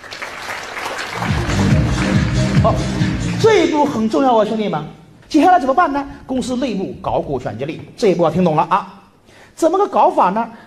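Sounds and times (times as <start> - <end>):
audience applause: 0.0 - 3.6
speech: 2.6 - 9.0, 9.6 - 10.6.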